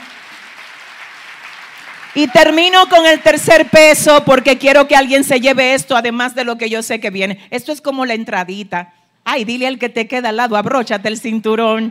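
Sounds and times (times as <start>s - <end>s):
crowd clapping: 0.0s - 3.7s
speech: 2.1s - 11.8s.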